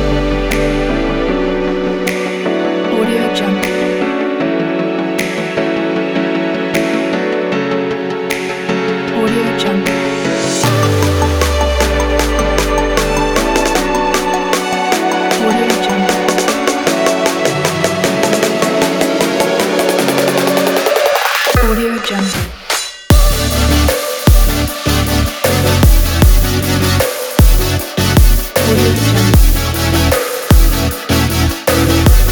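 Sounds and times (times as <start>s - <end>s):
future bass music: 0.0s - 32.3s.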